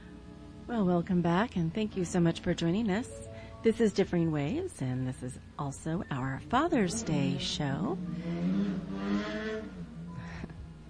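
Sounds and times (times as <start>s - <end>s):
speech: 0.7s - 8.6s
motorcycles driving past: 6.8s - 10.8s.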